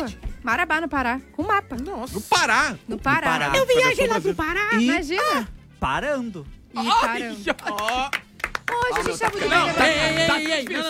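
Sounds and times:
speech: 0.0 - 10.8
hands clapping: 7.4 - 10.8.

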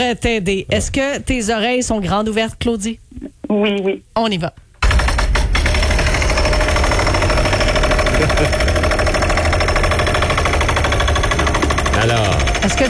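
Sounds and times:
speech: 0.0 - 4.6, 8.2 - 8.8, 12.1 - 12.8
jackhammer pounding at roadwork: 4.8 - 12.8.

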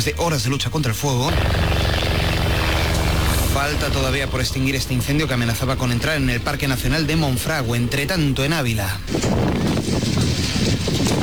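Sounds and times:
speech: 0.0 - 2.0, 3.6 - 10.1
strong wind in Ávila during a wildfire flare-up roaring: 1.3 - 11.2.

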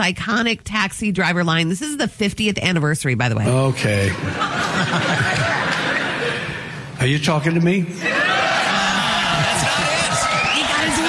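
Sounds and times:
speech: 0.0 - 5.6, 7.0 - 8.3
laughter: 3.5 - 6.8, 8.0 - 11.0
whoops and voices in a studio audience: 8.0 - 11.0
studio audience applause: 8.2 - 11.0.

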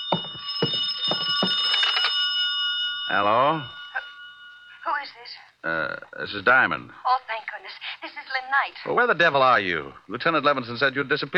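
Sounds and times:
telephone bell ringing inside a room: 0.0 - 5.4
speech: 3.1 - 3.8, 5.6 - 7.1, 8.5 - 11.3.

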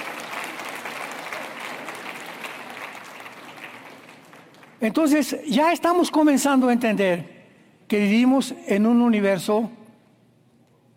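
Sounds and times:
audience applause: 0.0 - 4.8
speech: 4.8 - 7.3, 7.9 - 9.8.

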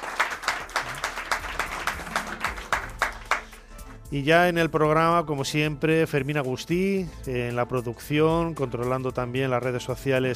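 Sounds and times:
audience applause: 0.0 - 3.6
speech: 4.1 - 10.3.

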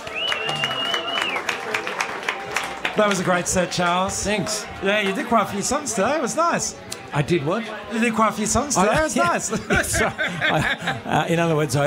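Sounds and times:
single sustained high whistle: 0.0 - 1.5
crowd clapping for a performer after a live music set in a pub: 0.0 - 5.3
speech: 3.0 - 11.8
laughter: 8.6 - 11.7.

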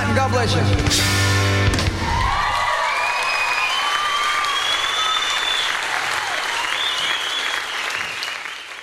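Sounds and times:
speech: 0.2 - 1.2
audience applause at end of live song: 2.0 - 8.8.

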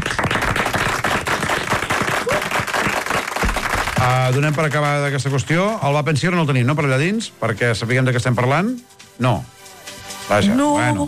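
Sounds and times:
people clapping: 0.0 - 6.2
speech: 4.1 - 9.6, 10.3 - 11.0.

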